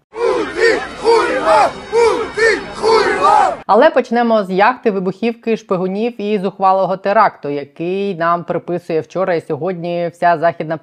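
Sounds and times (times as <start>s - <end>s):
protest crowd chanting in Tbilisi: 0.1s - 3.7s
speech: 3.7s - 10.8s.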